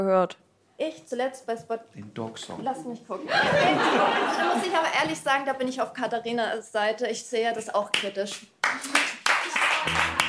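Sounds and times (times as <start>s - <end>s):
speech: 0.0s - 9.2s, 9.8s - 10.2s
laughter: 3.2s - 5.0s
two people clapping: 7.9s - 10.2s.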